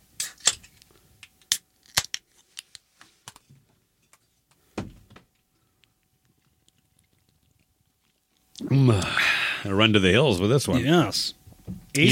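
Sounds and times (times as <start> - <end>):
pull tabs cracking open on one-pint beer cans: 0.2 - 2.2
speech: 8.7 - 11.4.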